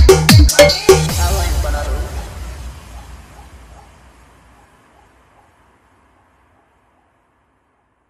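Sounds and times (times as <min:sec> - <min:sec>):
hard bass music mix: 0:00.0 - 0:02.6.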